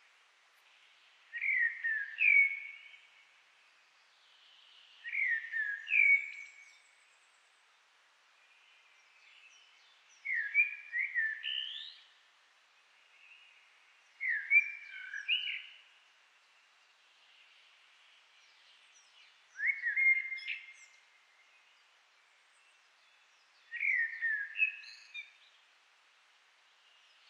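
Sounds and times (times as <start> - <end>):
common blackbird fluty warble with high thin notes: 0.0 - 25.9, 26.5 - 27.2.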